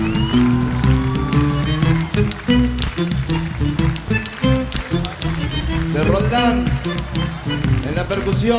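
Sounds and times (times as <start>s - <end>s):
audience applause: 0.0s - 8.5s
instrumental music: 0.0s - 8.5s
speech: 8.3s - 8.5s.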